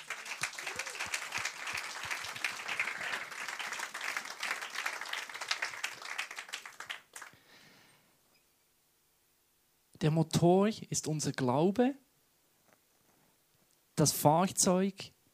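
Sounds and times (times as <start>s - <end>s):
audience applause: 0.0s - 7.4s
speech: 10.0s - 12.0s, 14.0s - 15.3s.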